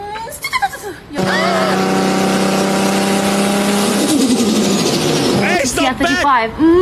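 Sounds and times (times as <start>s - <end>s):
Nissan Skyline R34 engine revving: 1.2s - 6.2s
person speaking: 5.4s - 6.3s.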